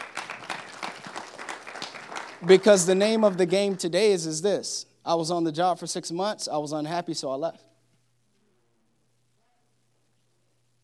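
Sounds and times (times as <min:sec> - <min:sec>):
audience clapping: 0:00.0 - 0:04.4
speech: 0:02.4 - 0:07.7.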